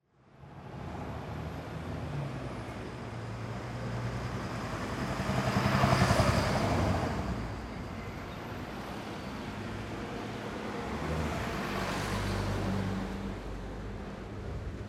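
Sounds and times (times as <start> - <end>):
traffic: 0.1 - 14.8.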